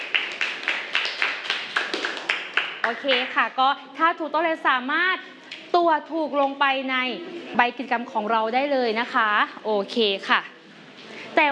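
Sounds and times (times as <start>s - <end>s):
classroom children clapping in unison for a classmate: 0.0s - 3.4s
speech: 2.9s - 10.6s.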